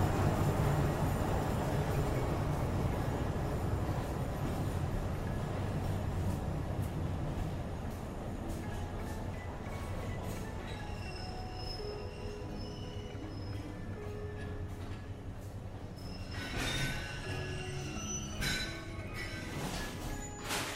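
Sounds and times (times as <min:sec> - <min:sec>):
forest railway train pulling into station: 0:00.0 - 0:20.7.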